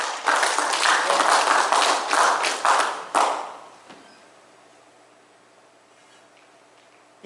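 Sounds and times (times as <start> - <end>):
audience hand clapping: 0.0 - 3.7.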